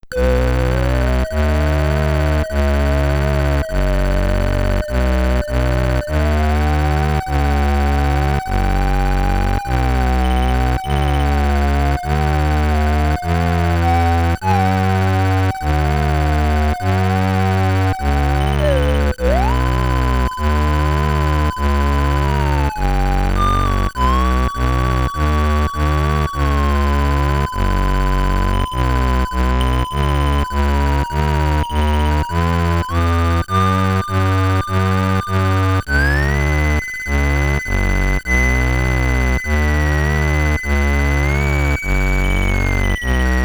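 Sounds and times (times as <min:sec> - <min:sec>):
Commodore 64 SID stereo background music: 0:00.1 - 0:43.4.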